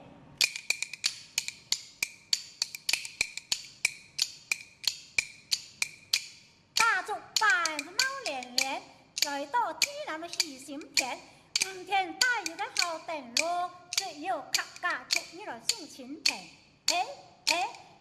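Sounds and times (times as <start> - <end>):
bamboo kuaiban clappers clacking: 0.4 - 17.9
child chanting rhythmically: 6.8 - 17.9
speech: 13.1 - 17.8.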